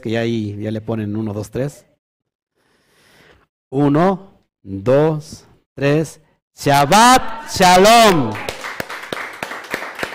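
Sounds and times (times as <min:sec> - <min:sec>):
speech: 0:00.0 - 0:01.9, 0:03.7 - 0:08.5
audience applause: 0:08.3 - 0:10.1.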